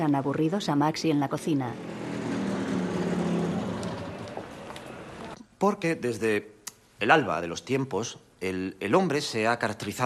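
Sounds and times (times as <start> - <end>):
speech: 0.0 - 2.0, 5.6 - 10.0
motorcycle engine stopping: 1.7 - 5.4.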